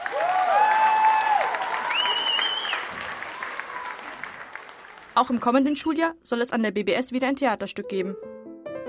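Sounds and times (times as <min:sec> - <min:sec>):
theatre audience applause: 0:00.0 - 0:05.4
speech: 0:05.2 - 0:08.3.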